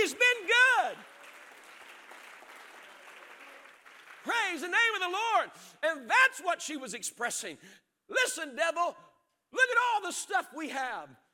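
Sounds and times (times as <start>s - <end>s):
people clapping hands: 0.0s - 5.1s
speech: 4.5s - 11.2s.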